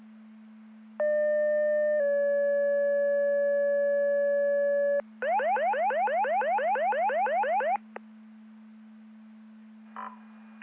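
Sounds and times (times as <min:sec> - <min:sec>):
siren: 0:01.0 - 0:07.8.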